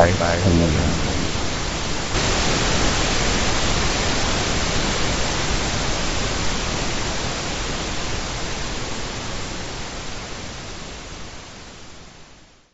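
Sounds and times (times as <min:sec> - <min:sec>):
pink noise: 0:00.0 - 0:09.6.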